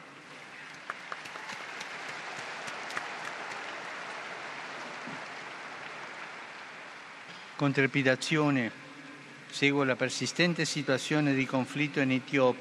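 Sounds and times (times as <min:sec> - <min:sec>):
applause for the newly beatified: 0:00.6 - 0:07.3
speech: 0:07.6 - 0:08.8, 0:09.6 - 0:12.6.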